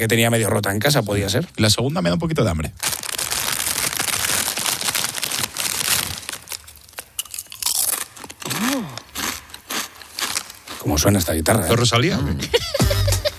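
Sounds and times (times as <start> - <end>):
speech: 0.0 - 3.0, 10.9 - 13.0
crunching and eating potato chips: 2.8 - 11.3
laughter: 12.3 - 13.3.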